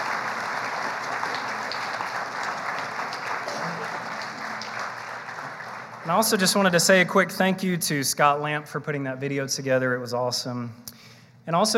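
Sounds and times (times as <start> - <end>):
audience applause for graduating seniors: 0.0 - 6.9
speech: 6.0 - 10.8, 11.4 - 11.7.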